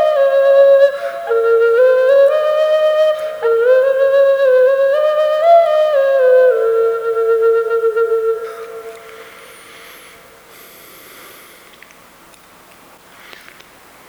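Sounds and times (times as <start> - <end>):
Indian side flute: 0.0 - 10.6.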